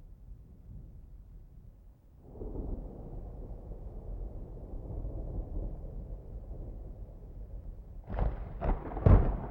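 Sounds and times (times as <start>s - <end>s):
distant thunder: 2.3s - 9.4s.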